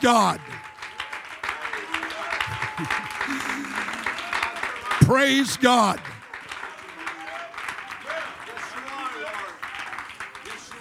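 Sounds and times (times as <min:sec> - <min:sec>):
speech: 0:00.0 - 0:00.5, 0:02.8 - 0:04.1, 0:05.0 - 0:06.1
laughter: 0:00.0 - 0:00.6, 0:01.8 - 0:06.2
audience clapping hands: 0:00.0 - 0:10.7.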